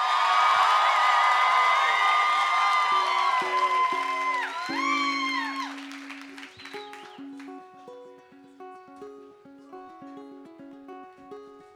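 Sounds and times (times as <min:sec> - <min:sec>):
audience applause and cheering: 0:00.0 - 0:07.6.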